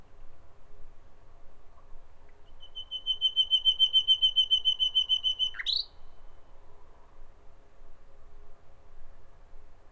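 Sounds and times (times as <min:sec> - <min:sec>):
common nightingale singing: 0:02.6 - 0:05.9.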